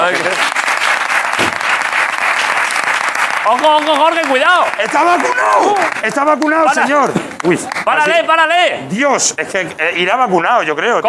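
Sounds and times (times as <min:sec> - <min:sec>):
audience applause: 0:00.0 - 0:08.3
speech: 0:03.5 - 0:11.0.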